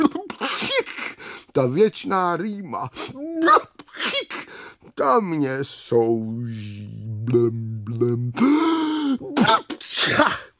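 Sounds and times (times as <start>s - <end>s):
person performing a loud theatrical sneeze: 0.0s - 1.2s, 3.4s - 4.6s, 8.4s - 10.5s
speech: 1.6s - 10.5s.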